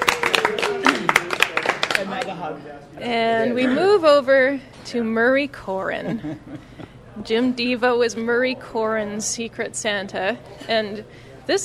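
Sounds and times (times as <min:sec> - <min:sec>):
audience applause: 0:00.0 - 0:02.4
speech: 0:02.0 - 0:11.6
laughter: 0:05.9 - 0:07.0.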